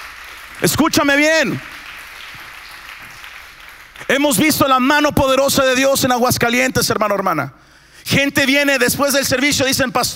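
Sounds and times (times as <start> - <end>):
loud applause: 0.0 - 4.8
speech: 0.6 - 1.7, 4.1 - 10.1.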